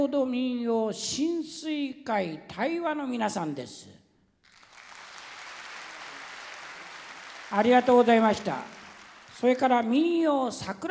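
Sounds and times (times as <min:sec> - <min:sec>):
speech: 0:00.0 - 0:04.0, 0:07.5 - 0:08.8, 0:09.4 - 0:10.8
audience applause: 0:04.4 - 0:10.0.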